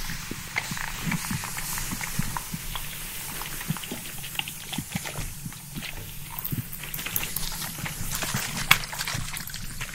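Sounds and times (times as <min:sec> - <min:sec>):
barbershop spray bottle spraying: 0:00.0 - 0:09.8.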